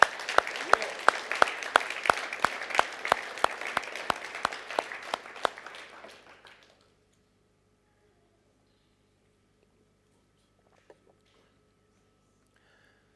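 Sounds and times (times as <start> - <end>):
audience applause: 0.0 - 6.9.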